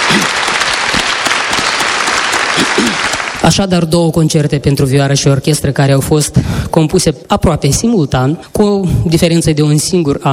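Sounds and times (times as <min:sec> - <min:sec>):
audience applause: 0:00.0 - 0:03.5
speech: 0:02.8 - 0:10.3.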